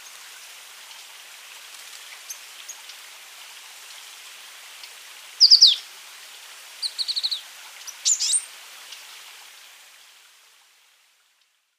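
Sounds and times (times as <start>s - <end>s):
faint hiss: 0.0s - 11.7s
Azure tit calls: 5.4s - 5.8s, 6.8s - 8.4s.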